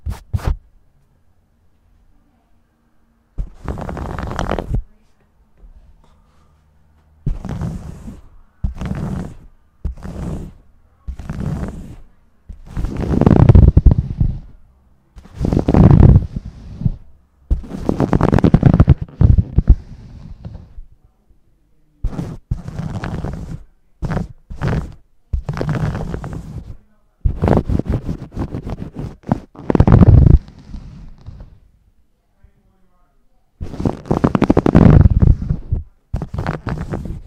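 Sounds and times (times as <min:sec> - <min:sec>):
muffled rubbing strokes of scalp and face massage: 0:00.0 - 0:00.6, 0:03.4 - 0:05.0, 0:07.2 - 0:14.6, 0:15.2 - 0:20.9, 0:22.0 - 0:31.7, 0:33.6 - 0:37.2.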